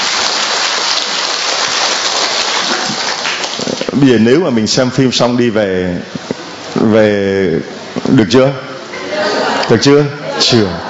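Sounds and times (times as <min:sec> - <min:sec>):
crowd clapping: 0:00.0 - 0:04.0
speech: 0:04.0 - 0:06.2, 0:06.8 - 0:08.7, 0:09.7 - 0:10.8
laughter: 0:08.9 - 0:10.8.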